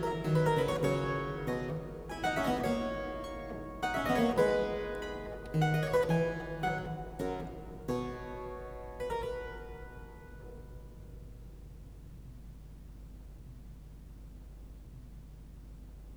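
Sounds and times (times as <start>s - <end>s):
minuet in C major: 0.0s - 11.0s.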